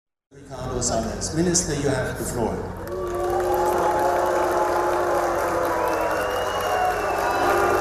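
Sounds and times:
speech: 0:00.5 - 0:02.7
crowd whistling and booing a speaker: 0:02.9 - 0:07.7.

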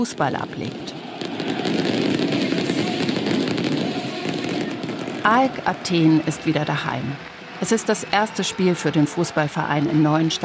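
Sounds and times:
speech: 0:00.0 - 0:01.5, 0:05.2 - 0:10.4
loud roar of noise in a football stadium: 0:00.0 - 0:10.4
fireworks and flares crackling and popping in football stadium: 0:01.1 - 0:07.6.

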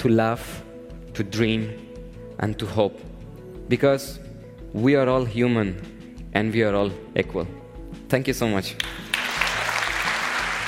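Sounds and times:
speech: 0:00.0 - 0:03.1, 0:03.7 - 0:09.1
audience applause after a talk: 0:08.8 - 0:10.6.

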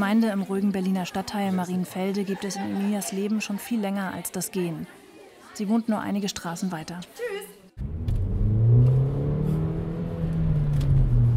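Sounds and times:
speech: 0:00.1 - 0:05.0, 0:05.6 - 0:07.9
sports car driving off: 0:07.8 - 0:11.3.

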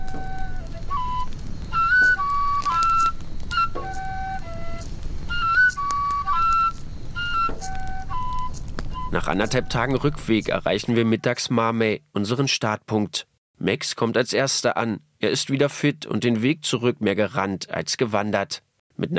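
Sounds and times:
flute melody played at a campfire: 0:00.0 - 0:11.3
speech: 0:09.2 - 0:19.1.

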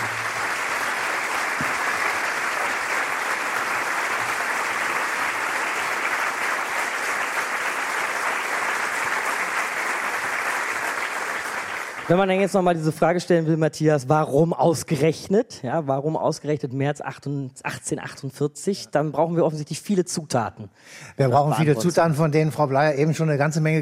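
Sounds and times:
audience applause: 0:00.0 - 0:12.5
speech: 0:12.1 - 0:23.8.

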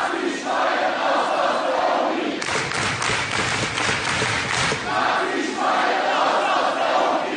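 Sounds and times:
protest crowd shouting and chanting in unison in lecture hall: 0:00.0 - 0:07.3
clapping: 0:02.4 - 0:05.0
rhythmic thumping: 0:02.4 - 0:05.2.

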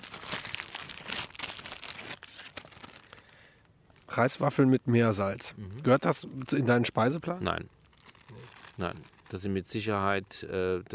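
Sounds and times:
plastic packaging crinkling during rummaging in a black bag: 0:00.0 - 0:04.3, 0:06.4 - 0:09.9
speech: 0:04.2 - 0:07.8, 0:08.8 - 0:10.9.

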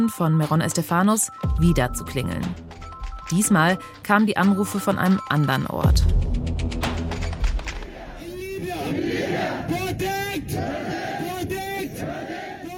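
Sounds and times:
speech: 0:00.0 - 0:02.7, 0:03.3 - 0:06.8
demonstration crowd shouting: 0:07.8 - 0:12.7
man calling through a microphone at a demonstration: 0:08.2 - 0:12.7.

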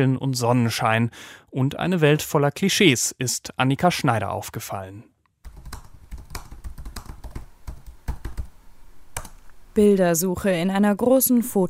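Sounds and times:
speech: 0:00.0 - 0:05.1, 0:09.8 - 0:11.6
computer keyboard typing a search term into a photo database: 0:05.4 - 0:09.4.

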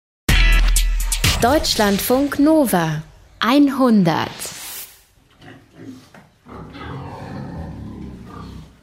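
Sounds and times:
speech: 0:01.4 - 0:04.6
pig grunting while lying down: 0:05.3 - 0:08.8.

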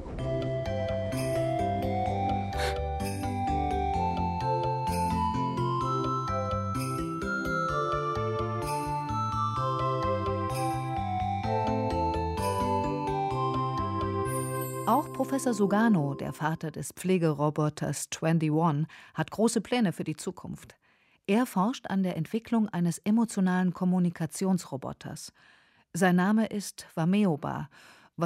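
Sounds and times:
Japanese train station departure melody: 0:00.0 - 0:16.6
speech: 0:14.9 - 0:28.2.

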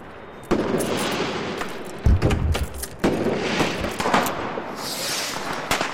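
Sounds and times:
New Year's Eve fireworks exploding: 0:00.5 - 0:05.9.

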